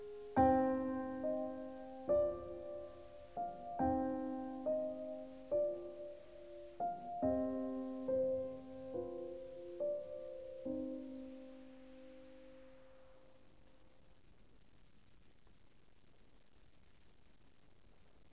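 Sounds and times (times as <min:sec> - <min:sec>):
piano music: 0:00.0 - 0:13.2.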